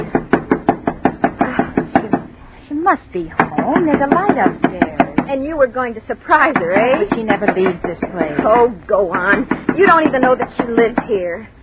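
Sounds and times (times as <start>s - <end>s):
knuckles knocking hard on a door: 0.0s - 2.3s, 3.4s - 5.3s, 6.5s - 11.2s
speech: 2.9s - 11.6s.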